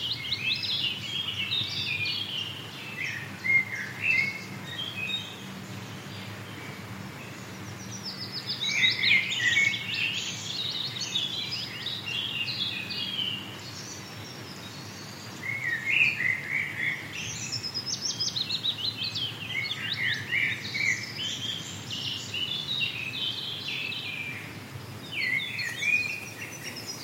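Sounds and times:
forest birds chirping and trilling: 0.0 - 27.0.

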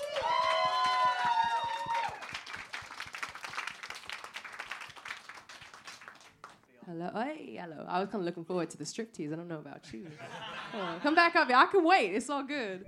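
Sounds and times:
high-pitched whoops and cheers: 0.0 - 2.4
crowd clapping: 0.0 - 6.7
speech: 7.0 - 12.8
laughter: 10.0 - 11.4.

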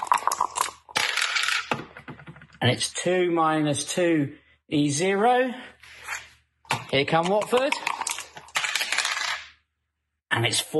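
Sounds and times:
dice rolling across a hard surface: 0.0 - 2.6, 7.4 - 9.5
speech: 2.6 - 5.7, 6.9 - 7.8, 10.4 - 10.7.

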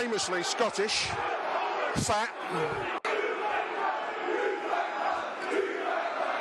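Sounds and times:
football crowd chanting at opposing manager: 0.0 - 6.3
speech: 0.2 - 1.4, 2.0 - 3.0.

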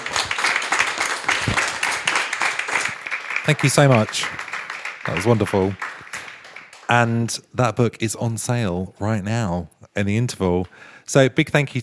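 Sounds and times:
audience applause: 0.0 - 7.4
speech: 3.5 - 4.4, 5.0 - 5.8, 6.9 - 11.8.

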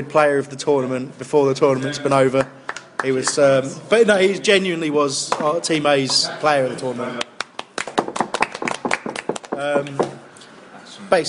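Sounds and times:
speech: 0.0 - 7.3, 9.6 - 10.2
hand claps: 2.4 - 3.4, 7.2 - 10.2.

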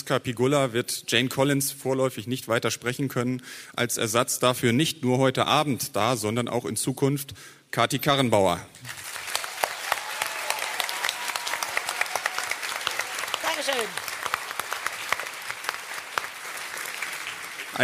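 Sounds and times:
speech: 0.1 - 9.2
audience applause: 8.9 - 17.8.

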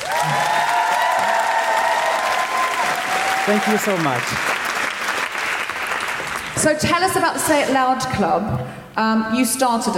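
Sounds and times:
audience cheering and whooping: 0.0 - 4.4
audience applause at a live Amnesty International and Guilty Feminist event: 0.0 - 6.6
speech: 3.5 - 4.5, 6.6 - 9.9.

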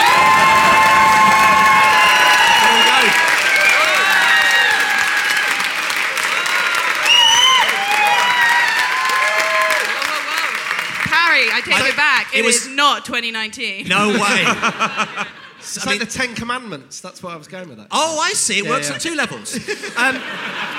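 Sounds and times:
audience applause: 0.0 - 12.5
speech: 12.4 - 20.7
laughter: 13.8 - 16.5, 18.7 - 20.7.

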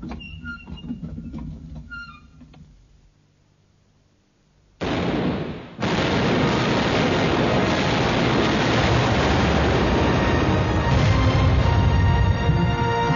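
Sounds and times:
ship's cannons firing: 4.8 - 13.0.

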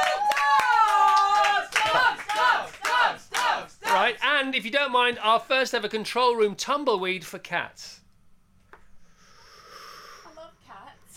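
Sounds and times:
round of applause from control room: 0.0 - 4.1
speech: 4.4 - 8.0.

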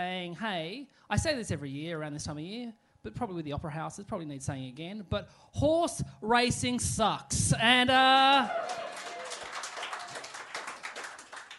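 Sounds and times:
speech: 0.0 - 8.9
scattered applause from part of an audience: 8.4 - 11.5.

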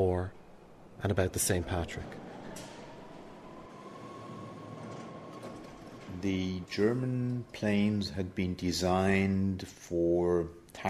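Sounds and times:
speech: 0.0 - 0.4, 1.0 - 2.7, 6.2 - 10.8
train passing: 0.0 - 10.5.

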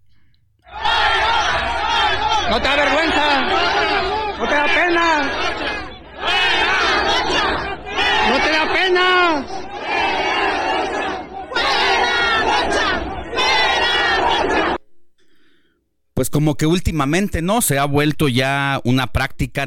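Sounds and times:
crowd booing and shouting: 0.7 - 14.8
speech: 2.5 - 5.8, 16.2 - 19.6.

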